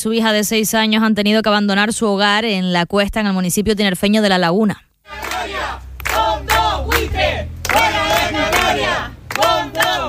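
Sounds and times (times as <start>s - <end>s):
speech: 0.0s - 5.8s
neighbors shouting during an eviction: 5.1s - 10.0s.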